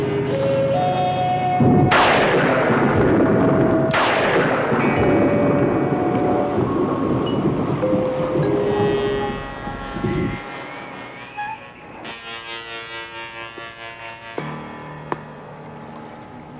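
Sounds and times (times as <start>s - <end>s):
sustained musical tones: 0.0s - 13.6s
violent thunderclaps in a sudden storm: 1.6s - 10.9s.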